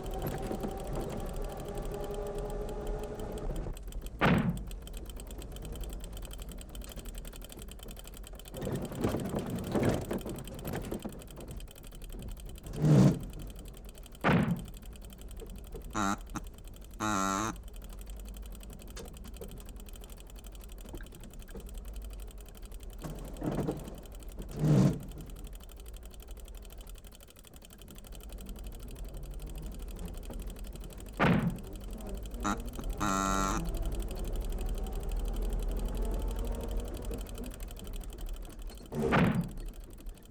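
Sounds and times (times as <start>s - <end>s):
old jalopy car: 0.0s - 40.3s.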